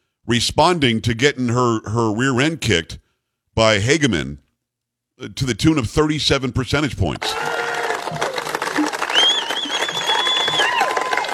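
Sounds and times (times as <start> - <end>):
speech: 0.3 - 3.0, 3.6 - 4.4, 5.2 - 8.2
few audience members clapping: 7.3 - 11.3.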